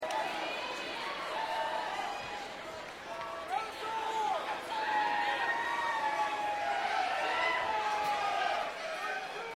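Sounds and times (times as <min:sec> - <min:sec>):
crowd: 0:00.0 - 0:09.5.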